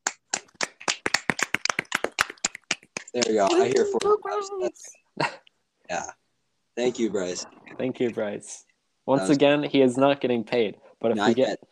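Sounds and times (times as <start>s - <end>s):
round of applause: 0.0s - 4.2s
speech: 3.1s - 6.2s, 6.8s - 11.6s.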